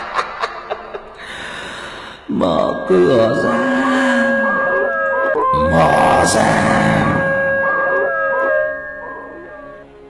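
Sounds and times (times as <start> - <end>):
laughter: 0.0 - 1.2
speech: 2.3 - 4.0, 5.6 - 7.2
several dogs around a house howling: 3.1 - 9.9.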